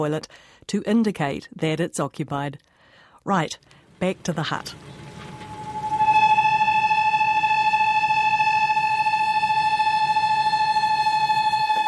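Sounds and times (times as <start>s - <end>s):
speech: 0.0s - 5.0s
kettle whistling on a stove: 4.6s - 11.8s.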